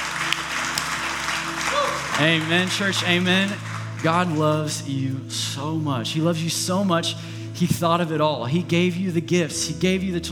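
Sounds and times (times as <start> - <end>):
audience applause: 0.0 - 4.8
speech: 2.2 - 10.3.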